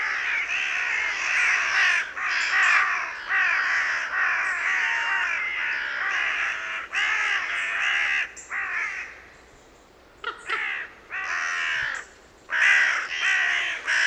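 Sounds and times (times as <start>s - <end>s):
carrion crow Corvus corone cawing with harsh rasping notes: 0.0s - 9.2s, 10.2s - 14.0s.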